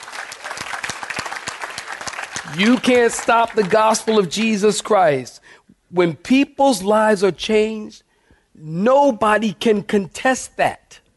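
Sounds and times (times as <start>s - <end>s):
audience clapping hands: 0.0s - 4.7s
speech: 2.4s - 8.0s, 8.6s - 11.0s.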